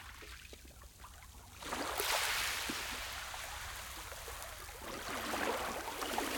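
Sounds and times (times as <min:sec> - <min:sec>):
gentle waves on a small beach with echo: 0:01.6 - 0:06.3.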